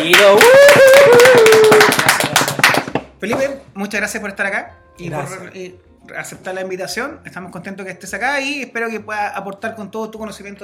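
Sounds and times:
speech: 0.0 - 0.6, 3.2 - 10.6
audience applause: 0.0 - 2.9.

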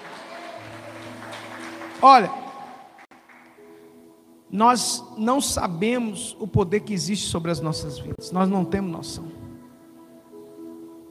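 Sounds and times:
audience applause: 0.0 - 3.6
speech: 2.0 - 2.4, 4.5 - 9.4.

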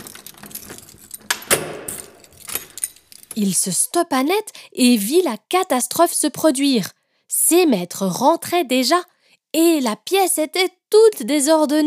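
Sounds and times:
key turning in a door lock: 0.0 - 3.5
speech: 3.4 - 11.8.

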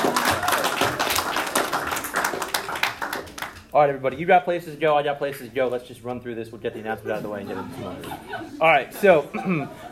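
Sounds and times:
audience applause: 0.0 - 3.7
speech: 3.8 - 9.9
laughter: 7.1 - 9.9.

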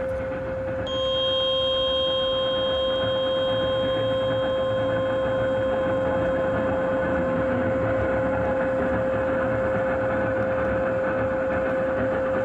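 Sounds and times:
radio interference whine: 0.2 - 12.4
high pitched tones: 0.9 - 9.4.

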